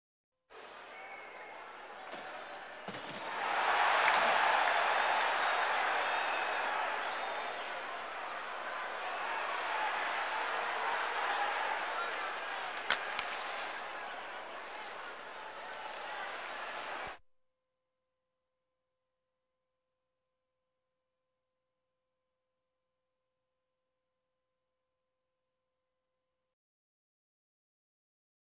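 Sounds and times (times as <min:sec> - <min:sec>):
sports crowd: 0:00.5 - 0:17.2.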